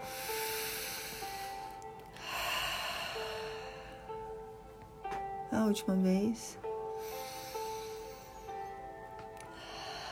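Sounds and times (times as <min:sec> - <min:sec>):
slow deep breathing during a guided relaxation exercise: 0:00.0 - 0:04.5, 0:06.8 - 0:10.0
speech: 0:05.6 - 0:06.6.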